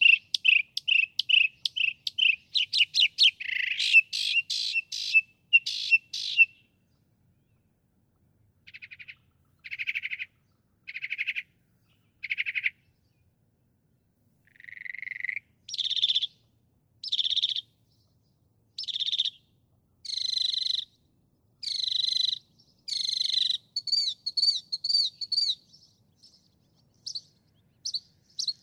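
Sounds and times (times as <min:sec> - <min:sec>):
northern mockingbird singing: 0:00.0 - 0:06.8, 0:08.7 - 0:13.0, 0:14.5 - 0:17.7, 0:18.8 - 0:19.4, 0:20.0 - 0:21.0, 0:21.6 - 0:28.6.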